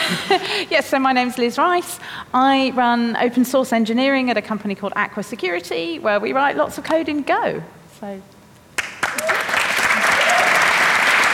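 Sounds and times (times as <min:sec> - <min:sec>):
speech: 0:00.1 - 0:08.4
live audience applause: 0:08.8 - 0:11.3.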